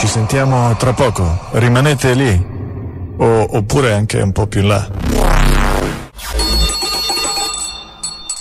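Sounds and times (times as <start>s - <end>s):
speech: 0.2s - 2.6s, 3.2s - 5.0s
bell ringing: 6.4s - 8.3s
short high chimes: 6.4s - 8.3s.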